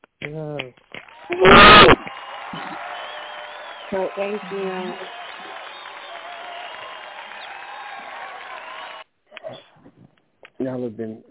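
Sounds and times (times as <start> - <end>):
speech: 0.2 - 1.6, 3.9 - 5.2, 10.6 - 11.2
audience applause: 1.0 - 9.1.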